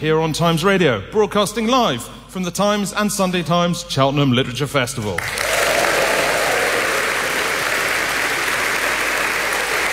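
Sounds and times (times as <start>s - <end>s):
speech: 0.0s - 5.5s
audience applauding: 5.2s - 9.9s.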